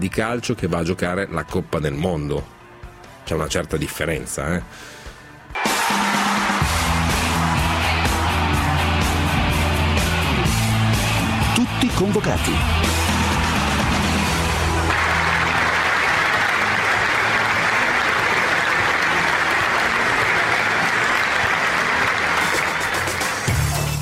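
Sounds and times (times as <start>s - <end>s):
speech: 0.0s - 2.6s, 3.2s - 5.0s, 12.0s - 13.0s
football supporters applauding: 5.6s - 23.9s.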